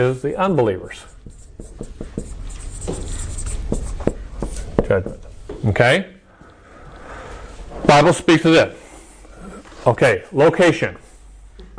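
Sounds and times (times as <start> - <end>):
speech: 0.0 - 2.0, 4.9 - 6.2, 7.9 - 8.8, 9.8 - 11.0
hiss: 0.0 - 11.7
pen scratching while handwriting a letter J: 1.1 - 4.7.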